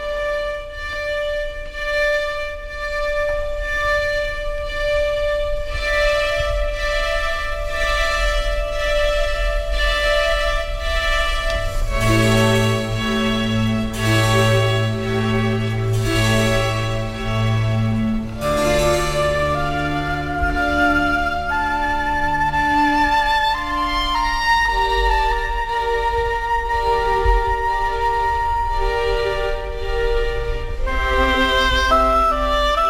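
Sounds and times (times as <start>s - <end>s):
slow Baroque melody with soft orchestral backing: 0.0s - 32.8s.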